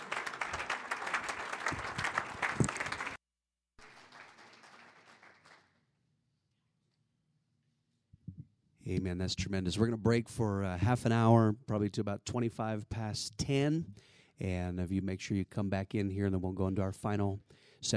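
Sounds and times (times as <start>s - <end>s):
audience applause: 0.0s - 3.2s, 3.8s - 5.7s
speech: 8.9s - 17.9s.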